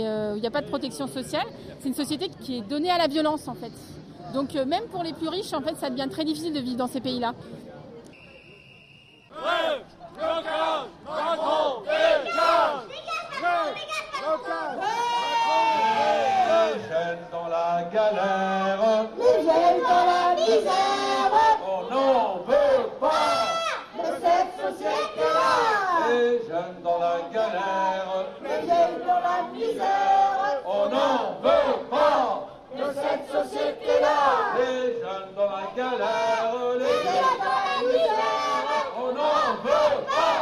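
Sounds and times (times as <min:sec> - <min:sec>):
speech: 0:00.0 - 0:07.7
shrill whistles: 0:08.1 - 0:09.4
street protest crowd shouting and chanting: 0:09.3 - 0:40.4.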